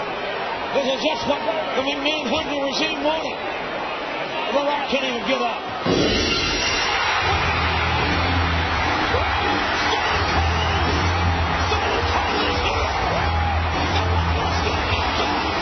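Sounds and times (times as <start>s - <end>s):
wrestling arena crowd cheering wildly: 0.0s - 15.6s
speech: 0.7s - 3.7s, 4.5s - 6.4s.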